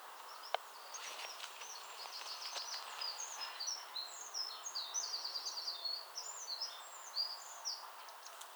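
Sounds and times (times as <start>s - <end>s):
Eurasian wren Troglodytes troglodytes singing: 0.2s - 8.4s.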